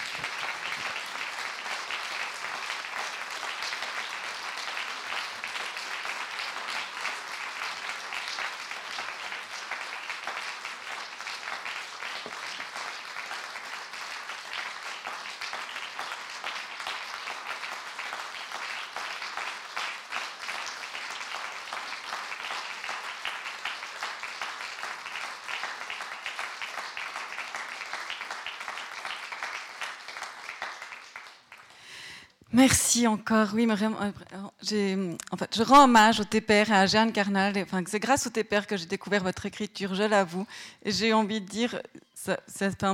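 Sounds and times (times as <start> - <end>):
audience applause: 0.0 - 32.2
speech: 32.6 - 42.9.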